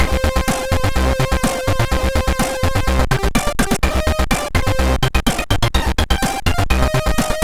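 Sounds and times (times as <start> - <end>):
MOS6581 SID chip synth sound: 0.0 - 7.4.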